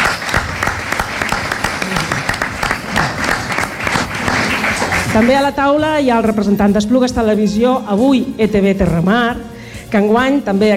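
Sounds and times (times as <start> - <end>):
audience applause: 0.0 - 5.4
speech: 5.2 - 10.7.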